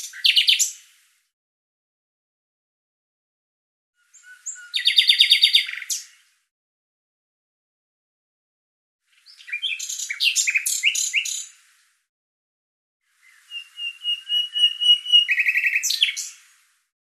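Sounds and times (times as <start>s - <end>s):
bird calling in rapid high chirps: 4.0s - 6.0s, 9.2s - 11.5s, 13.2s - 16.4s.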